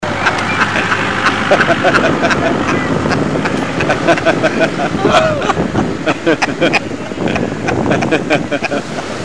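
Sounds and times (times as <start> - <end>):
person laughing: 0.2 - 9.1.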